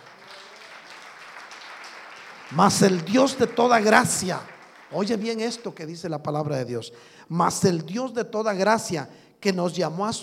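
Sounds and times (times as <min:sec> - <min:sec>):
audience applause: 0:00.0 - 0:05.6
speech: 0:02.5 - 0:10.2.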